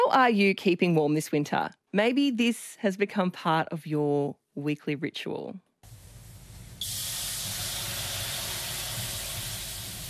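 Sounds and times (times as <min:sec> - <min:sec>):
speech: 0:00.1 - 0:05.7
water thrown on hot sauna rocks, steaming: 0:05.8 - 0:10.0.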